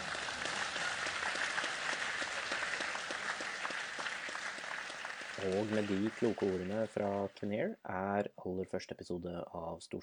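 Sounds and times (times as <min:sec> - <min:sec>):
audience applause: 0:00.0 - 0:07.3
speech: 0:05.4 - 0:10.0.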